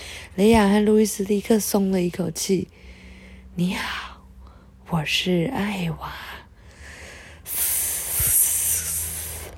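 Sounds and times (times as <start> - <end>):
speech: 0.4 - 2.8, 3.6 - 4.0, 4.9 - 6.4
actress imitating snake hiss: 7.5 - 9.5.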